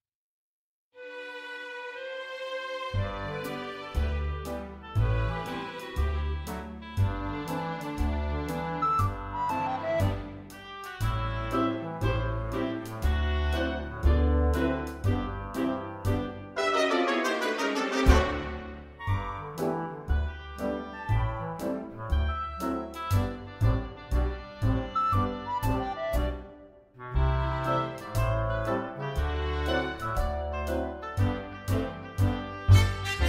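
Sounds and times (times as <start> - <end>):
instrumental music: 1.0 - 33.2.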